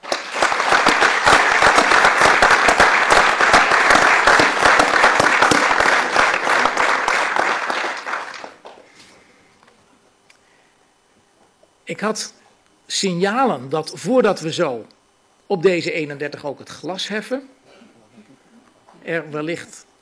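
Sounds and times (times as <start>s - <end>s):
audience applause for new council members: 0.0s - 8.9s
speech: 12.0s - 17.6s, 19.1s - 19.8s.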